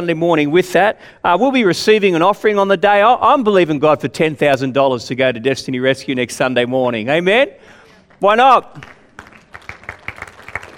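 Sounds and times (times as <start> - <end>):
speech: 0.0 - 9.0
audience clapping: 8.0 - 10.7.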